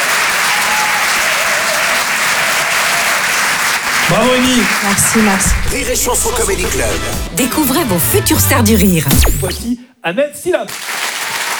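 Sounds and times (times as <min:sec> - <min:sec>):
audience applause: 0:00.0 - 0:07.4, 0:10.7 - 0:11.5
speech: 0:04.1 - 0:11.0.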